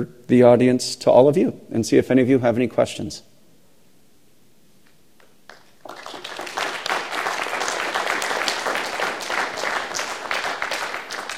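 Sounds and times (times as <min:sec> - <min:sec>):
speech: 0:00.0 - 0:03.3
audience applause: 0:05.5 - 0:11.3.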